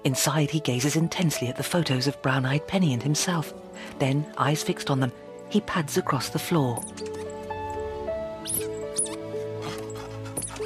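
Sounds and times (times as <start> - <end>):
speech: 0.0 - 7.2
squeaky toy carrot squeaking: 6.8 - 7.7, 8.4 - 10.6.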